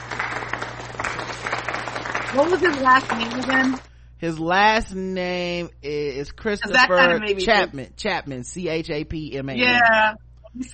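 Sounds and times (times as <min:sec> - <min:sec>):
golf clap: 0:00.0 - 0:03.8
speech: 0:02.3 - 0:10.7.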